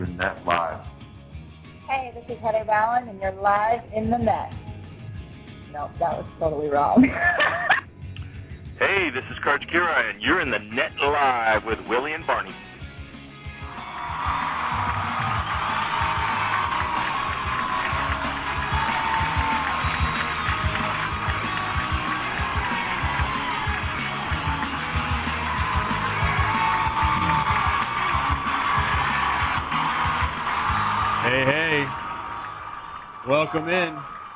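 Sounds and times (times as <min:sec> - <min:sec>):
speech: 0:00.2 - 0:00.8, 0:02.3 - 0:04.6, 0:05.7 - 0:07.7, 0:08.8 - 0:12.6, 0:33.4 - 0:34.1
laughter: 0:07.0 - 0:07.9
crowd applauding: 0:08.8 - 0:12.5, 0:13.5 - 0:34.3
shouts and whoops: 0:13.6 - 0:34.3.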